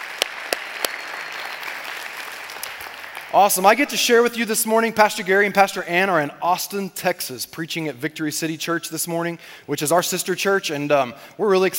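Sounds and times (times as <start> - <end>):
church congregation clapping to welcome guests: 0.0 - 4.2
speech: 3.3 - 11.7.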